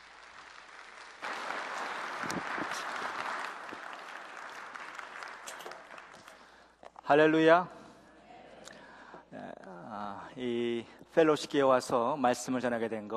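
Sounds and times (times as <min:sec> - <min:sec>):
audience welcoming applause: 0:00.0 - 0:06.7
speech: 0:07.1 - 0:07.8, 0:10.4 - 0:13.1.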